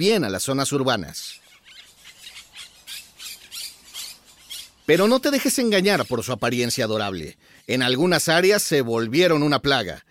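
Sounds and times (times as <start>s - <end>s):
speech: 0.0s - 1.4s, 4.9s - 10.0s
Monk Parakeet harsh rasping squawks: 1.3s - 8.2s.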